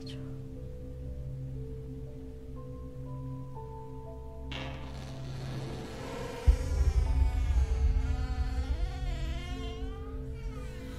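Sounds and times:
droning buzzing whine in a closed 14th-floor apartment at night: 5.1 - 10.9.

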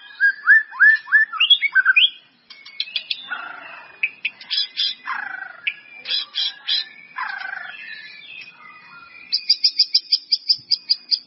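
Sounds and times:
White-rumped Shama song: 0.0 - 11.2.

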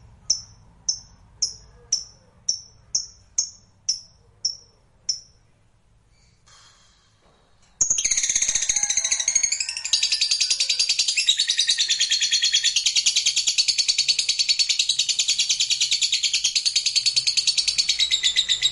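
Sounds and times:
lovebird twittering chatter: 8.0 - 18.7.

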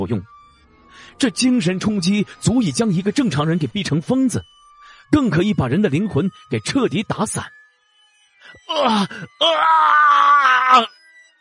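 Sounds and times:
speech: 0.0 - 0.4, 1.0 - 7.6, 8.5 - 11.0
man roaring like a wild beast: 8.7 - 10.9.

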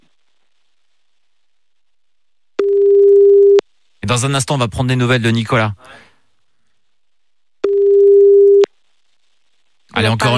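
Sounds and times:
telephone ringback tone of an unanswered call: 2.6 - 3.6, 7.6 - 8.7
speech: 4.1 - 6.1, 10.0 - 10.3.

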